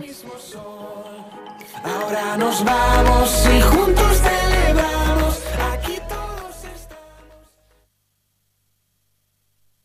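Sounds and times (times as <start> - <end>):
jingle: 0.9 - 7.4.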